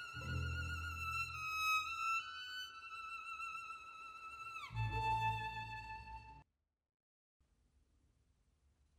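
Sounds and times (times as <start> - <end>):
violin concerto second movement: 0.0 - 6.4.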